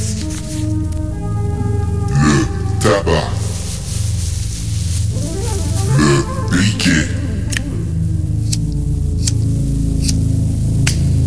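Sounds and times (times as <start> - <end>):
rolling paper being handled: 0.0 - 1.1, 2.0 - 6.8
steady low droning tonal background: 0.0 - 11.2
speech: 2.9 - 3.4.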